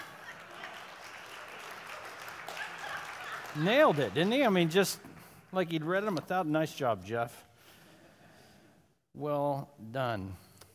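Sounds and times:
audience applause: 0.0s - 6.2s
speech: 3.6s - 7.5s, 9.2s - 10.4s.

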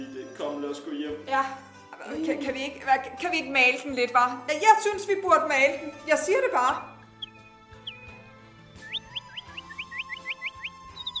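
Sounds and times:
speech: 0.7s - 6.9s
nightingale singing: 6.2s - 11.1s.

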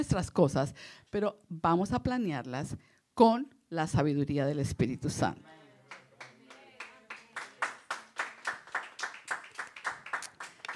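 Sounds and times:
speech: 0.0s - 5.6s
rhythmic audience clapping: 5.9s - 10.7s.

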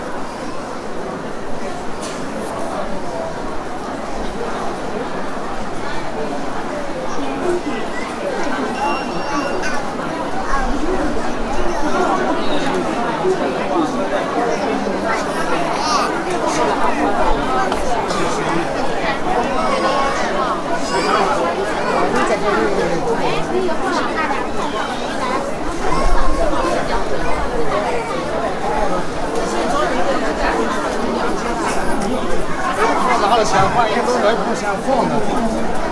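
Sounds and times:
murmur of voices in Qingdao Hospital outpatient hall: 0.0s - 35.9s
loud exclamations: 15.1s - 16.7s.

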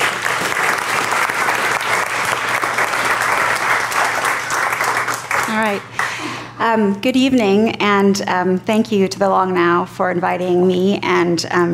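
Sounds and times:
audience applause for speaker: 0.0s - 6.2s
speech: 5.6s - 6.0s, 6.6s - 11.7s.

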